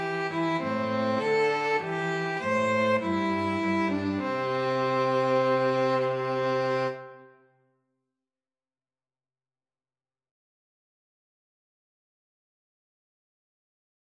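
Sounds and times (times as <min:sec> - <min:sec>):
string trio karaoke backing track: 0:00.0 - 0:07.2.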